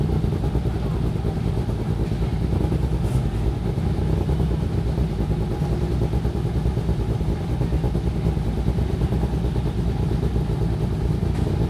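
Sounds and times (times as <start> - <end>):
cars starting up with low engine rumble: 0.0 - 11.6
faint clatter: 11.1 - 11.6.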